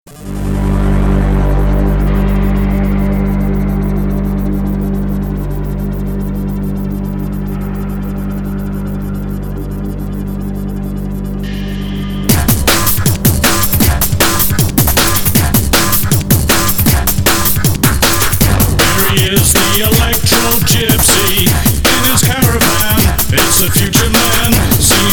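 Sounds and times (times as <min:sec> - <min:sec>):
electro gypsy drum and bass remix: 0:00.1 - 0:25.1.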